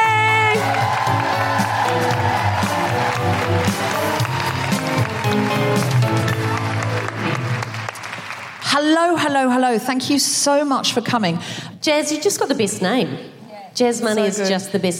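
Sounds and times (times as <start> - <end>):
live audience woo-hooing and cheering in Sydney: 0.0 - 8.4
live audience clapping in Sydney: 0.2 - 9.2
speech: 8.8 - 14.9.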